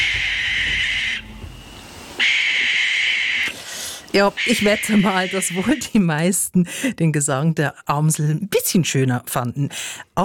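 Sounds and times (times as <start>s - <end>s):
barn owl call: 0.0s - 3.5s, 4.2s - 6.0s
speech: 4.1s - 10.2s.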